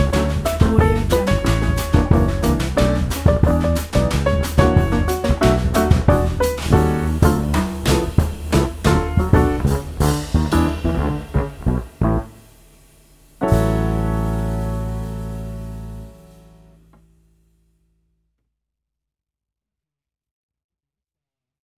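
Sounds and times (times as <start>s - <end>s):
jazz Christmas tune: 0.0s - 17.4s.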